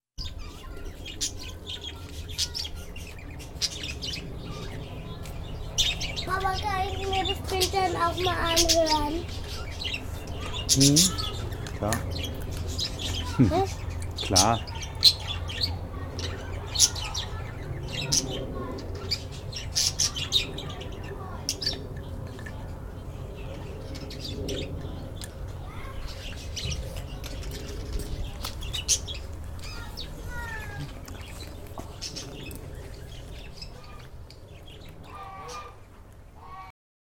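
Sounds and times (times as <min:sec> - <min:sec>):
bird in Germany: 0:00.2 - 0:35.8.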